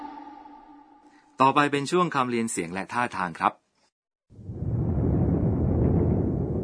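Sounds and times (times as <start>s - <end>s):
speech: 1.4s - 3.6s
thunder rumbling: 4.3s - 6.6s.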